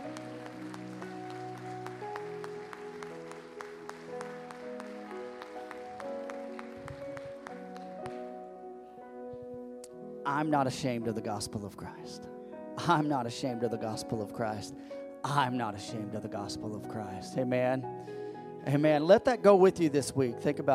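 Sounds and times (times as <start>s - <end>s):
audience hand clapping: 0.0s - 8.4s
speech: 10.3s - 20.7s.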